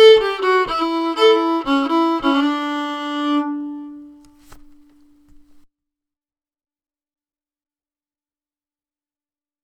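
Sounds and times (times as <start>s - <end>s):
slow waltz: 0.0s - 5.6s.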